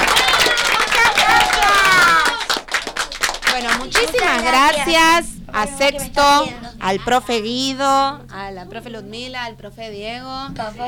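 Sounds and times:
group applause: 0.0 - 5.3
speech: 4.3 - 10.8.

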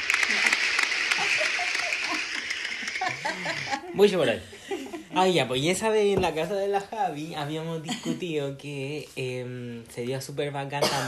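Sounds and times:
round of applause: 0.0 - 3.7
laughter: 0.2 - 5.2
speech: 3.5 - 4.6, 5.2 - 11.0.

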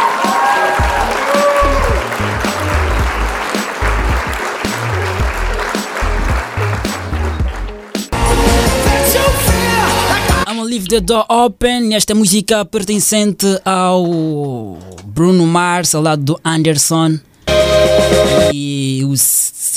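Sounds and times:
loud audience applause: 0.0 - 9.1
thumping musical backing: 0.0 - 10.5, 17.5 - 18.5
speech: 10.9 - 17.3, 17.9 - 19.7.

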